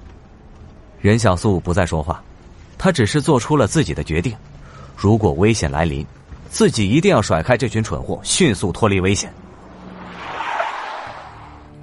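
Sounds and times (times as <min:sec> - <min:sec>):
low engine rumble: 0:00.0 - 0:11.8
speech: 0:01.0 - 0:09.4
tires of a lead convoy vehicle skidding on the road under hard braking: 0:09.3 - 0:11.8.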